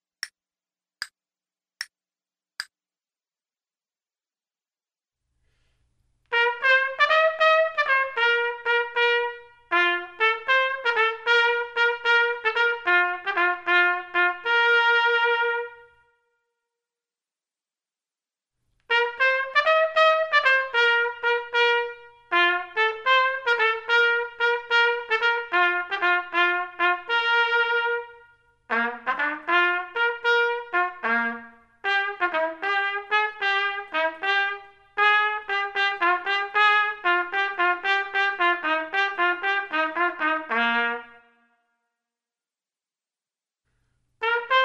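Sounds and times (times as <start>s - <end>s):
trumpet: 6.3s - 16.3s, 18.9s - 41.6s, 44.2s - 44.6s.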